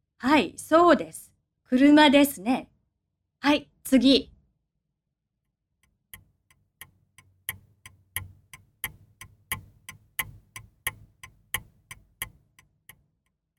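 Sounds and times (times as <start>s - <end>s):
speech: 0.2s - 2.7s, 3.4s - 4.3s
clock ticking: 5.8s - 13.3s.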